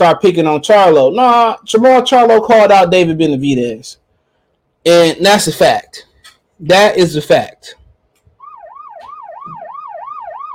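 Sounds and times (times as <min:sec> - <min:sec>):
speech: 0:00.0 - 0:04.0, 0:04.8 - 0:07.8
police siren sound effect yelping: 0:08.3 - 0:10.5.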